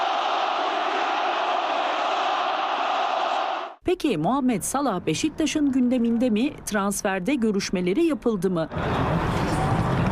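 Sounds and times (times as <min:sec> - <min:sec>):
football fans chanting at a signing ceremony: 0:00.0 - 0:03.8
speech: 0:03.9 - 0:09.4.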